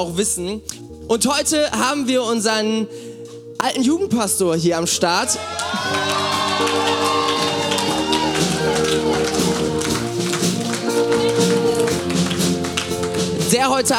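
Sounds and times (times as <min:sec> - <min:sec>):
speech: 0:00.0 - 0:07.2, 0:13.5 - 0:13.9
audience applause: 0:05.4 - 0:13.3.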